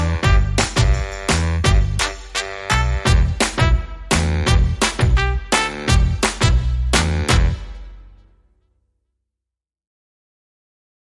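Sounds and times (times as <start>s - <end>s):
rockabilly jive music without guitars, organ or voices: 0.0s - 8.0s.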